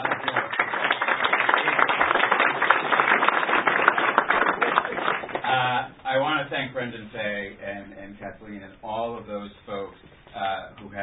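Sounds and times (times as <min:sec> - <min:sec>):
round of applause: 0:00.0 - 0:05.6
speech: 0:06.8 - 0:11.0.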